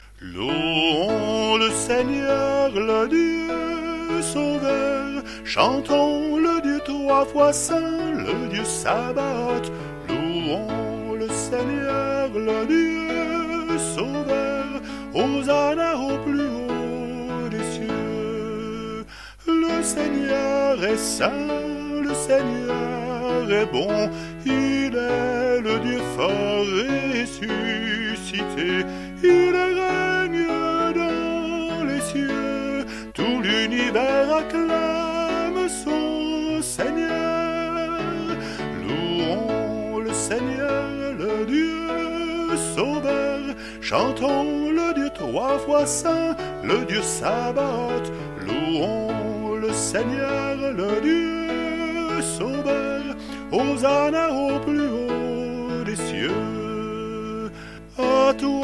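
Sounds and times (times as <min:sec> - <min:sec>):
hymn: 0:00.0 - 0:58.6.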